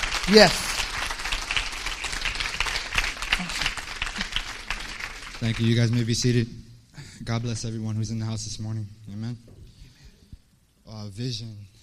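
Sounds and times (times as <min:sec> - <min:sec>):
audience applause: 0:00.0 - 0:06.3
speech: 0:00.3 - 0:00.7, 0:05.4 - 0:06.6, 0:07.2 - 0:09.5, 0:10.9 - 0:11.7.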